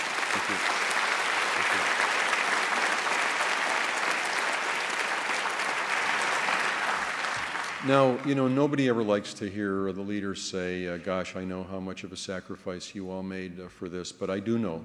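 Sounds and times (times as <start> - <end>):
audience applause: 0.0 - 8.6
speech: 0.4 - 0.8, 1.6 - 2.1, 7.8 - 14.8.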